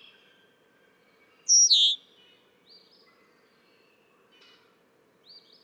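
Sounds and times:
other birds calling: 0:01.5 - 0:02.0.

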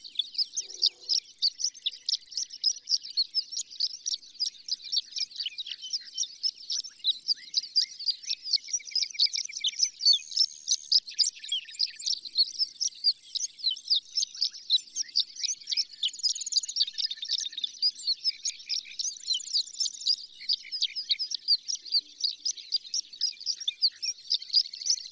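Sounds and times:
horned lark singing a tinkling jumble: 0:00.0 - 0:25.0.

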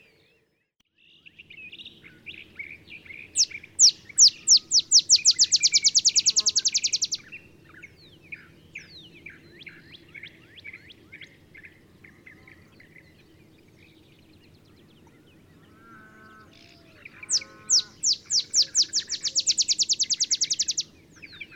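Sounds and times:
olive sparrow song: 0:00.0 - 0:21.5
other small birds chirping: 0:00.0 - 0:21.5.

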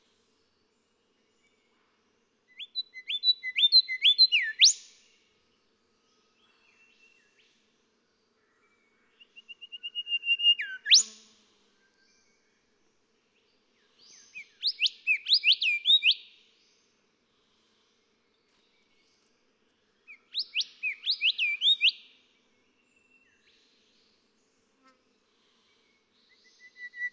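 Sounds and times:
golden whistler song: 0:02.6 - 0:04.8, 0:09.3 - 0:11.1, 0:14.3 - 0:16.3, 0:20.3 - 0:22.0, 0:26.4 - 0:27.1.

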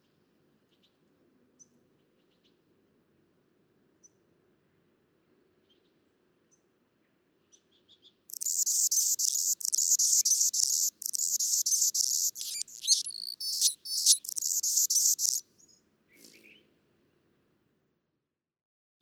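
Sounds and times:
Anna's hummingbird buzzing song: 0:08.3 - 0:15.4.

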